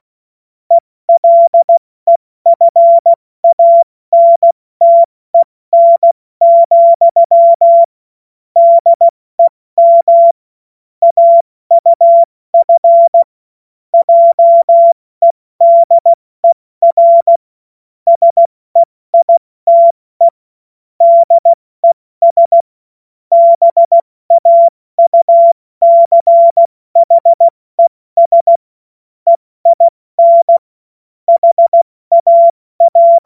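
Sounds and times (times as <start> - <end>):
CW Morse code beeps: 1.2 - 7.9, 8.6 - 10.4, 11.0 - 13.3, 14.0 - 17.4, 18.1 - 20.4, 21.0 - 22.7, 23.3 - 27.6, 28.2 - 28.6, 29.3 - 30.6, 31.3 - 33.2.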